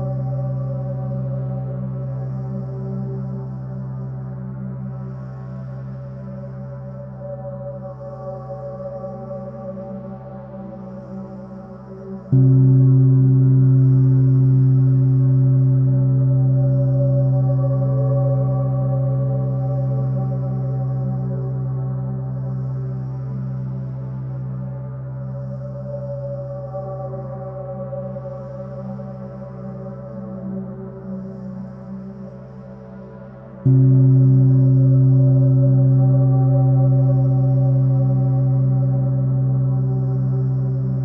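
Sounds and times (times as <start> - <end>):
space soundscape: 0.0 - 41.0
gong: 8.7 - 31.6, 33.6 - 41.0.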